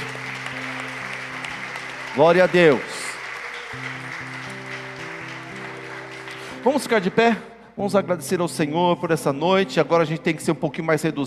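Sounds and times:
audience applauding: 0:00.0 - 0:07.3
speech: 0:02.2 - 0:02.9, 0:03.7 - 0:04.2, 0:06.6 - 0:11.2.

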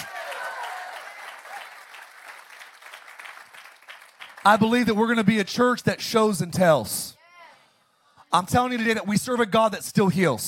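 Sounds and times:
audience clapping hands: 0:00.0 - 0:05.2, 0:08.6 - 0:09.1
speech: 0:04.4 - 0:07.2, 0:08.3 - 0:10.4.

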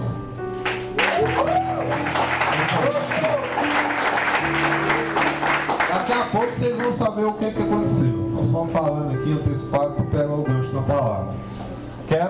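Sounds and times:
audience applause: 0:00.6 - 0:07.0
speech: 0:06.4 - 0:11.5.

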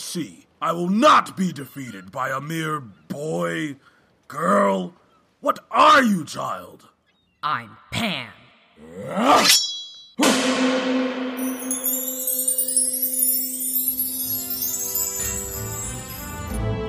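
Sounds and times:
speech: 0:00.1 - 0:12.0
sword appearing by magic with a metallic clang: 0:09.5 - 0:15.5
shimmering magical swell: 0:10.6 - 0:16.6
glittering high chimes: 0:11.2 - 0:16.8.

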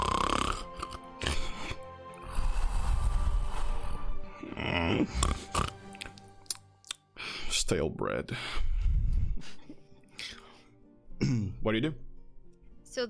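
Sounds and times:
imitated snoring of a sleeping guard: 0:00.0 - 0:06.0
speech: 0:07.7 - 0:08.7, 0:11.3 - 0:12.0.

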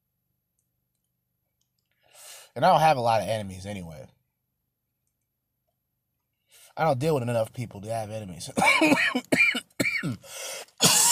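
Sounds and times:
speech: 0:02.6 - 0:04.2, 0:06.8 - 0:10.2
harsh hoarse coughing from smoking a joint: 0:08.6 - 0:11.1
throat-clearing: 0:08.6 - 0:11.1.

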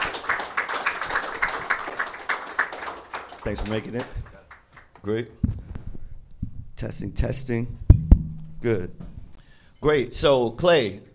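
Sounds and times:
audience applause: 0:00.0 - 0:04.9
speech: 0:03.4 - 0:04.2, 0:05.0 - 0:05.5, 0:06.8 - 0:07.8, 0:08.6 - 0:09.0, 0:09.8 - 0:11.1.

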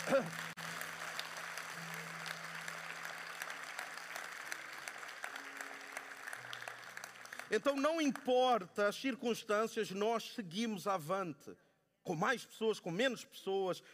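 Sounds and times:
crowd applause: 0:00.0 - 0:08.4
speech: 0:00.1 - 0:00.5, 0:07.5 - 0:13.9.

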